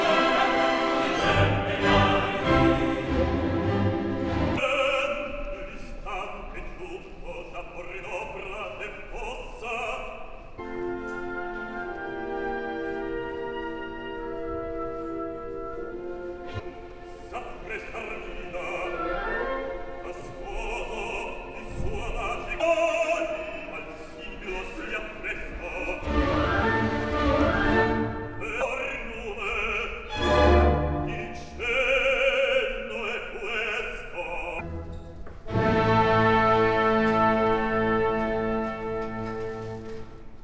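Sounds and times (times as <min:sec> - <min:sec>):
chorus singing: 0:00.0 - 0:05.8, 0:17.3 - 0:34.8
orchestra: 0:00.0 - 0:40.4.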